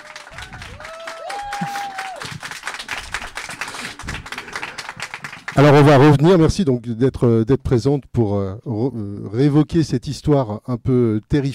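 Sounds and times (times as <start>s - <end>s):
audience applause at the Quais du polar festival: 0.0s - 6.2s
speech: 5.6s - 11.5s.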